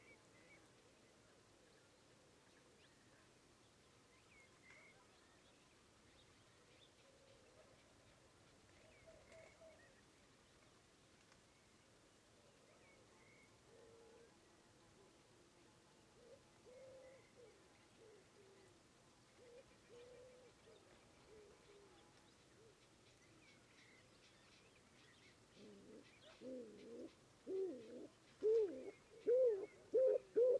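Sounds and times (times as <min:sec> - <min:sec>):
stock dove Columba oenas calling: 0:25.6 - 0:30.5.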